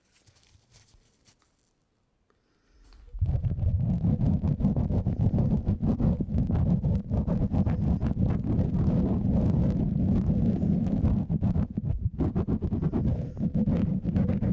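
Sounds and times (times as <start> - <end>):
brush swishing across a microphone: 0.0 - 1.4, 3.2 - 14.5
faint light sounds: 0.0 - 3.1.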